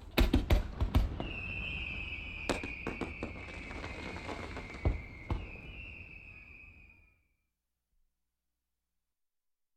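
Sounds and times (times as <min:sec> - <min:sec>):
fireworks: 0:00.0 - 0:07.1.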